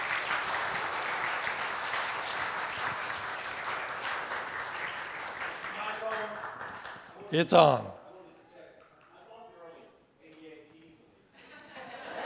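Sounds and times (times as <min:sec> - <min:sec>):
audience applause: 0:00.0 - 0:07.9
speech: 0:07.3 - 0:08.0
laughter: 0:11.4 - 0:12.2.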